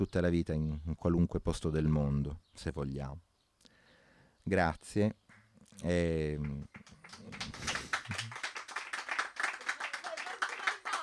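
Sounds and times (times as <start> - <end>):
speech: 0.0 - 3.3, 4.4 - 7.4
audience applause: 6.4 - 11.0.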